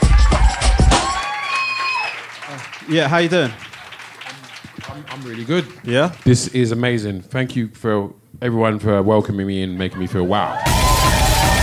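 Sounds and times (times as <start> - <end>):
audience applauding to welcome a guest: 0.1 - 7.0, 10.6 - 11.6
speech: 2.9 - 3.6, 5.0 - 10.8.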